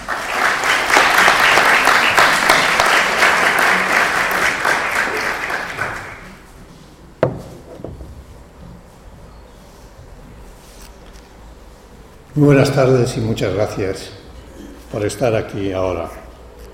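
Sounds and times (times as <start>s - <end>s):
crowd applauding warmly: 0.0s - 6.5s
sharp knock: 7.2s - 8.2s
speech: 12.4s - 14.2s, 14.9s - 16.2s.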